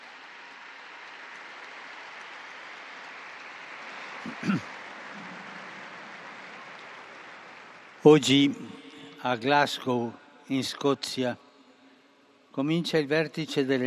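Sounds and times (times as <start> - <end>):
crowd applause: 0.0 - 10.0
speech: 4.2 - 4.8, 8.0 - 11.4, 12.6 - 13.8.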